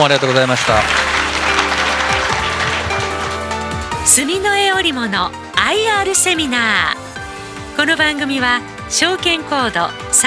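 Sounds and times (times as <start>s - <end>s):
speech: 0.0s - 1.1s, 4.0s - 7.0s, 7.8s - 10.2s
audience applause: 0.0s - 4.2s.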